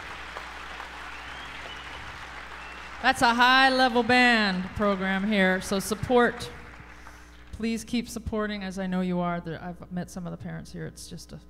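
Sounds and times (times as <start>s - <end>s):
audience applause for jazz students from a school band program: 0.0s - 7.4s
speech: 3.0s - 6.6s, 7.6s - 11.4s.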